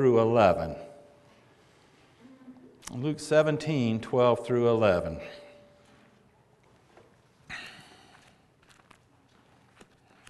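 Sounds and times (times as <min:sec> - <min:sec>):
speech: 0:00.0 - 0:00.9, 0:02.9 - 0:05.4
Bible pages turning: 0:08.2 - 0:10.2.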